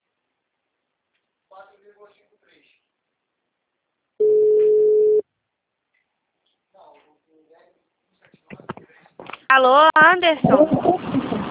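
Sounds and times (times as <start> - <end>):
telephone busy tone after a dropped call: 4.2 - 5.2
speech: 9.5 - 11.0.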